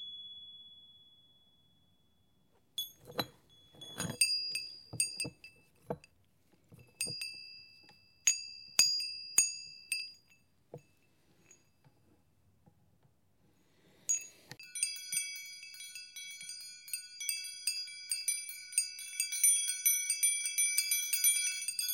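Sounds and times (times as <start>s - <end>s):
wind chimes: 2.8s - 6.1s, 6.7s - 11.8s, 14.0s - 21.9s.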